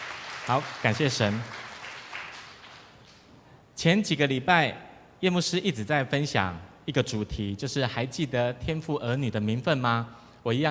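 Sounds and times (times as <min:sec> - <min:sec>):
audience clapping to welcome newcomer: 0:00.0 - 0:03.3
speech: 0:00.5 - 0:01.6, 0:03.8 - 0:10.7.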